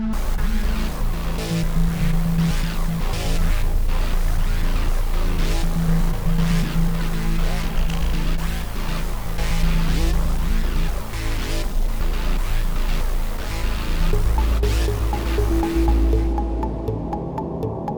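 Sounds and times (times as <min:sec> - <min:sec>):
ambient fight intensity music: 0:00.2 - 0:17.8.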